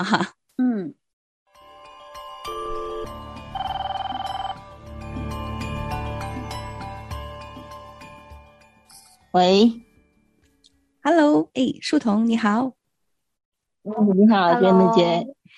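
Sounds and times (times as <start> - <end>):
speech: 0.0 - 1.0, 9.3 - 9.8, 11.1 - 12.8, 13.8 - 15.5
melodic phone ringtone: 1.6 - 5.3.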